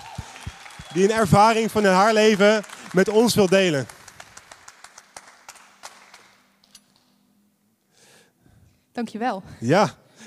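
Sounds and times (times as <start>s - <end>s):
audience applause: 0.0s - 6.5s
speech: 1.0s - 4.0s, 9.0s - 10.2s.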